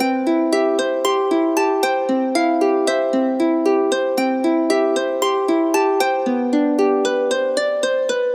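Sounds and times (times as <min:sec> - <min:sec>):
harp: 0:00.0 - 0:08.3.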